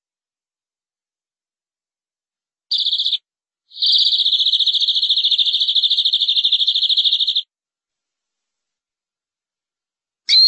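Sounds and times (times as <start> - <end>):
canary rolling trill: 2.7 - 7.4.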